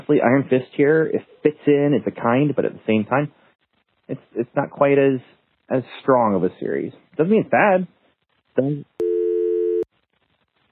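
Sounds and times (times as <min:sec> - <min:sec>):
speech: 0:00.1 - 0:03.4, 0:04.1 - 0:08.0, 0:08.6 - 0:09.0
voicemail beep: 0:09.0 - 0:09.9.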